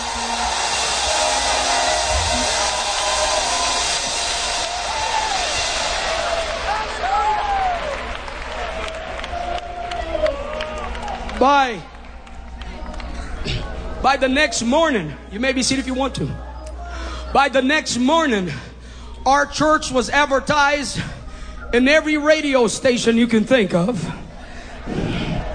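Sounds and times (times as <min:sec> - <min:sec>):
audience clapping and shouting: 0:00.0 - 0:14.0
speech: 0:11.4 - 0:12.0, 0:14.0 - 0:16.5, 0:17.3 - 0:24.2.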